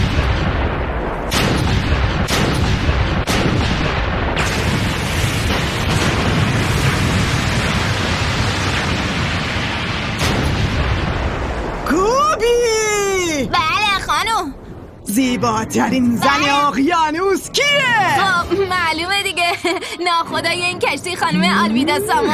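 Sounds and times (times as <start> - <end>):
heavy cannon fire during pirate attack: 0.0 - 15.0
speech: 15.7 - 22.3.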